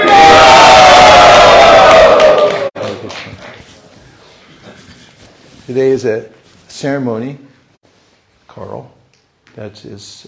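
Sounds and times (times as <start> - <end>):
scattered fainter shouts: 0.0 - 2.6
crowd cheering and whooping: 0.0 - 3.2
clapping: 1.6 - 3.7
speech: 5.7 - 7.5, 8.6 - 9.0, 9.6 - 10.2.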